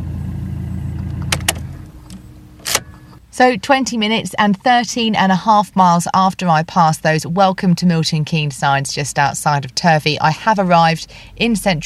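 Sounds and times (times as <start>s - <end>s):
car engine rumbling on a drive from Turvey into central Milton Keynes: 0.0s - 11.8s
speech: 3.4s - 11.8s.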